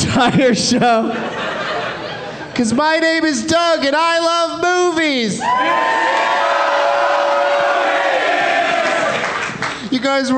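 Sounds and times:
laughter: 0:00.0 - 0:02.6
speech: 0:00.2 - 0:01.6, 0:02.6 - 0:06.4, 0:09.9 - 0:10.3
audience cheering: 0:05.4 - 0:09.7.

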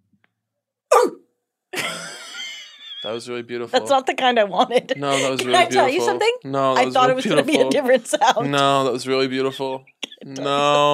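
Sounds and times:
person imitating an angry Rottweiler barking and growling: 0:00.9 - 0:01.2, 0:10.2 - 0:10.9
laughter: 0:01.8 - 0:10.9
speech: 0:03.0 - 0:10.9.

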